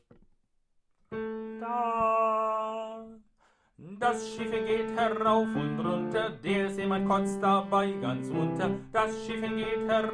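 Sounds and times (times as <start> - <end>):
tenor singing: 1.5 - 3.2, 3.8 - 10.1.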